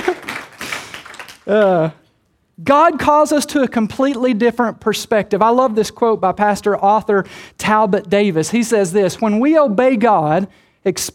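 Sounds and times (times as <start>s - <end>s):
audience clapping lightly: 0.0s - 2.0s
speech: 1.5s - 2.0s, 2.6s - 11.1s.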